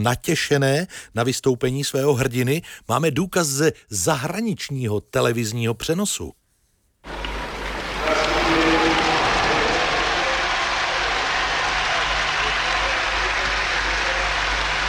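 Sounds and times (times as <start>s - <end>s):
speech: 0.0s - 6.4s
arena audience applauding: 7.1s - 14.8s.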